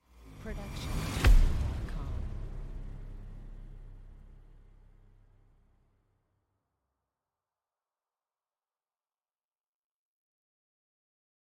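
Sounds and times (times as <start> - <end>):
epic impact hit: 0.2 - 6.0.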